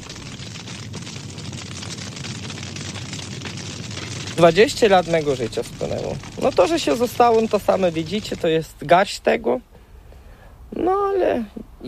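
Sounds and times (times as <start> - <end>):
house fire roaring: 0.0 - 10.6
speech: 4.4 - 9.7, 11.2 - 11.8.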